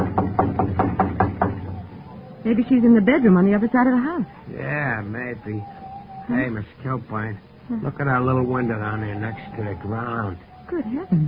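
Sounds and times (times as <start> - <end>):
knocking on a kitchen door: 0.0 - 1.9
speech: 2.5 - 11.2.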